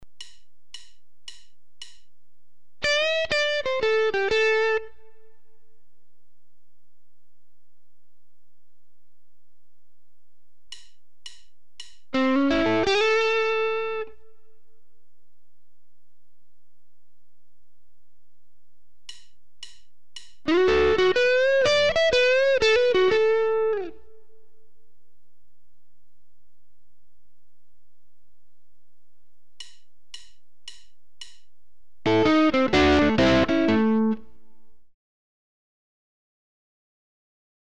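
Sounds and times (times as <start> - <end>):
blues guitar licks: 2.8 - 5.4, 12.1 - 14.2, 20.4 - 24.2, 32.0 - 34.3.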